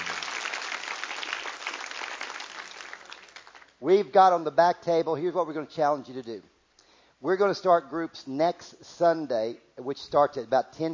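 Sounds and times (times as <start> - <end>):
audience clapping: 0.0 - 3.8
speech: 3.8 - 6.5, 7.2 - 10.9.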